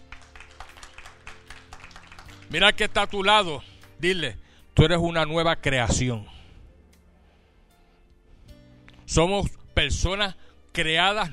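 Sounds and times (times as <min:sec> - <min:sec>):
audience applause: 0:00.0 - 0:02.5
speech: 0:02.5 - 0:06.3, 0:09.1 - 0:11.3.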